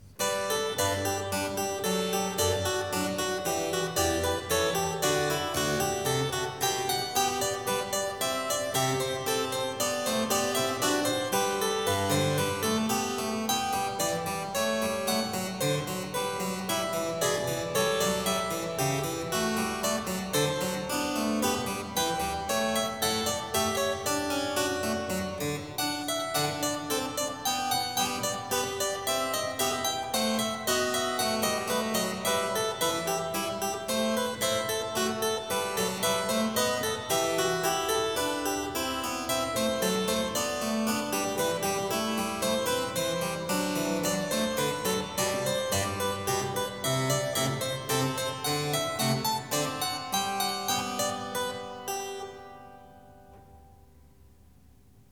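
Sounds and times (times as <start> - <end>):
harpsichord piece for one manual: 0.0 - 54.0.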